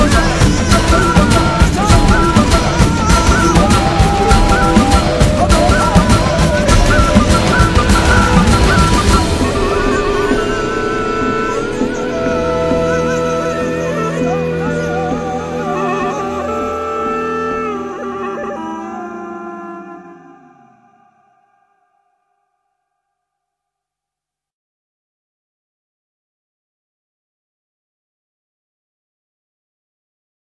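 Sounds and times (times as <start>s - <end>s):
theme music: 0.0s - 20.9s.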